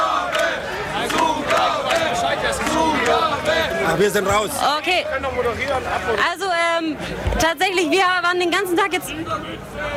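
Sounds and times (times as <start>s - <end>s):
concert crowd chanting for an encore: 0.0s - 5.2s
speech: 3.9s - 9.9s.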